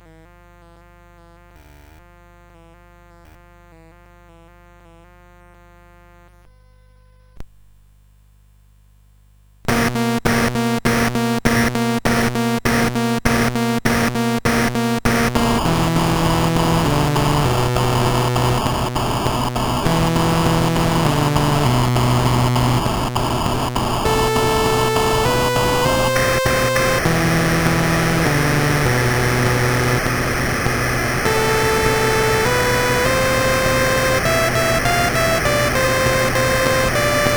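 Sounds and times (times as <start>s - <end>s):
drums on CSG 8580R5 SID chip: 9.7s - 37.3s.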